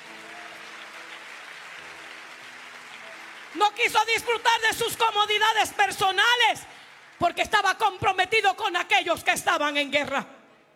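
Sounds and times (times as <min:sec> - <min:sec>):
audience applauding: 0:00.0 - 0:07.7
speech: 0:03.6 - 0:10.4.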